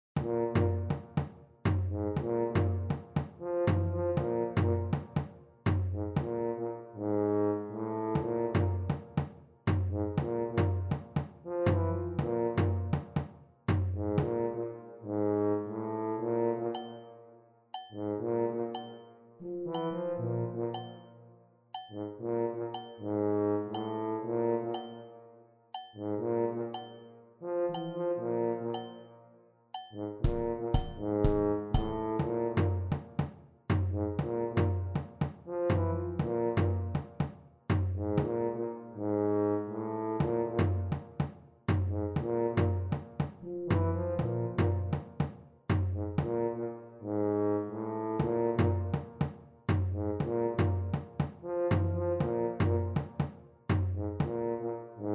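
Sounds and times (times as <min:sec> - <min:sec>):
tuba: 0:00.2 - 0:17.4, 0:18.0 - 0:21.4, 0:22.0 - 0:29.1, 0:30.0 - 0:55.1.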